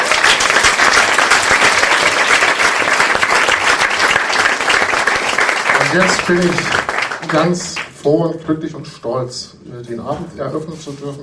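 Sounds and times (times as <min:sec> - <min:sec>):
audience applause: 0:00.0 - 0:07.9
speech: 0:05.9 - 0:11.2.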